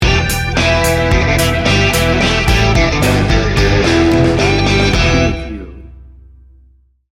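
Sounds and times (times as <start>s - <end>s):
big rig truck running: 0.6s - 6.4s
bumper sting: 1.6s - 6.7s.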